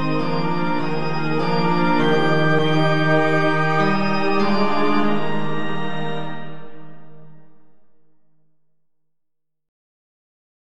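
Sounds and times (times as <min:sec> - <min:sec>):
multi-instrument music: 0:00.0 - 0:07.5.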